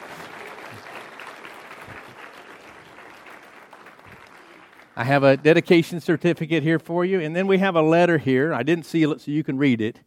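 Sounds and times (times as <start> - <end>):
crowd clapping: 0.0 - 6.2
speech: 5.0 - 10.0.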